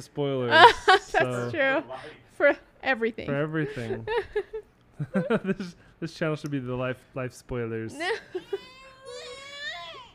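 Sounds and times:
speech: 0.0s - 9.2s
baby crying: 8.0s - 10.1s.

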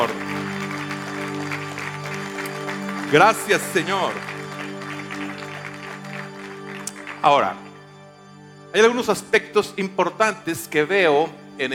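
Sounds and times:
church congregation applauding: 0.0s - 9.1s
speech: 3.1s - 4.4s, 7.2s - 7.6s, 8.7s - 11.7s.

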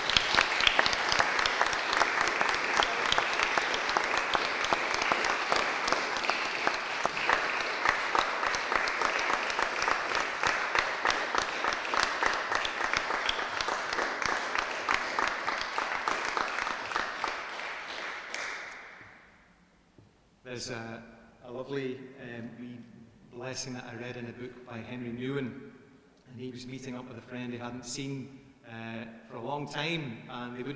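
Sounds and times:
audience applause: 0.0s - 18.8s
speech: 23.5s - 25.6s, 26.4s - 30.7s.

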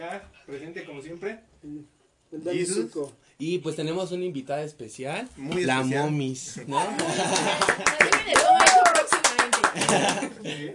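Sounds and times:
speech: 0.0s - 9.2s, 9.8s - 10.7s
people laughing: 6.7s - 8.6s, 9.5s - 10.7s
people clapping: 6.8s - 10.5s.

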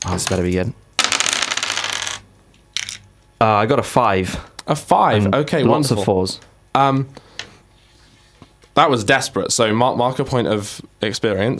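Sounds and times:
speech: 0.1s - 0.9s, 3.4s - 7.2s, 8.8s - 11.5s
four dice being rolled: 1.0s - 2.2s, 2.8s - 3.0s.

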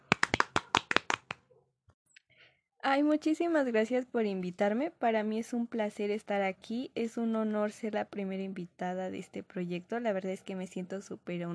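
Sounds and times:
hand clapping: 0.0s - 1.4s
speech: 2.8s - 11.5s.

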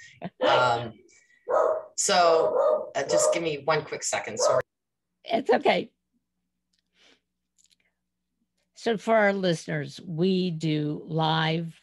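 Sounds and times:
speech: 0.2s - 1.0s, 2.0s - 4.6s, 5.3s - 6.0s, 8.8s - 11.8s
dogs barking indoors: 1.5s - 3.6s, 4.3s - 4.7s.

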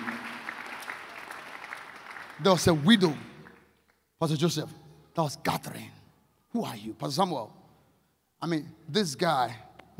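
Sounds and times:
audience clapping hands: 0.0s - 4.0s
speech: 2.4s - 3.3s, 4.2s - 7.6s, 8.4s - 9.9s.

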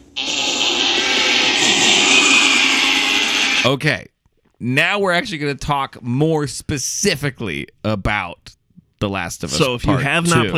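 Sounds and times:
alarm sound effect layered over itself: 0.1s - 3.7s
speech: 3.6s - 10.5s.

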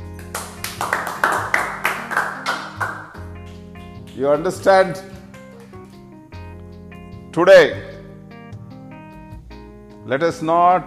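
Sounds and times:
audience clapping: 0.0s - 6.1s
speech: 4.2s - 5.2s, 7.4s - 7.9s, 10.1s - 10.8s.

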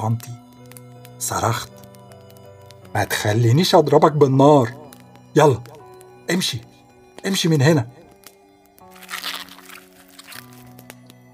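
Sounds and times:
speech: 0.0s - 0.4s, 1.2s - 1.8s, 2.9s - 5.7s, 6.3s - 8.0s
animal gnawing and chewing on a bone: 8.8s - 11.0s.

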